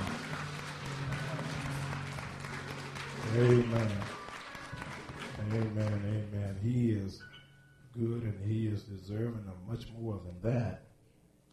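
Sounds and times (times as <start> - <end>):
audience applause: 0.0 - 6.4
speech: 3.4 - 4.2, 5.5 - 7.3, 8.0 - 10.9.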